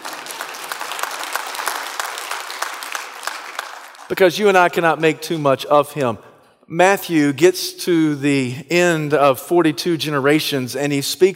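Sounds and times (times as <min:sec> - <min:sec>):
audience applause: 0:00.0 - 0:04.1
speech: 0:04.1 - 0:11.3.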